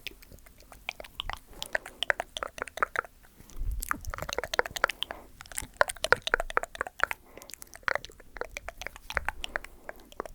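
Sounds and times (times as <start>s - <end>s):
mouth clicks, pops and smacks: 0.0s - 10.3s
soft low thumps: 3.6s - 4.3s.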